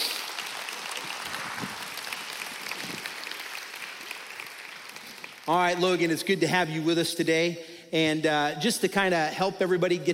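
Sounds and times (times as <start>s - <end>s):
audience applauding a student: 0.0s - 6.1s
speech: 5.5s - 10.1s.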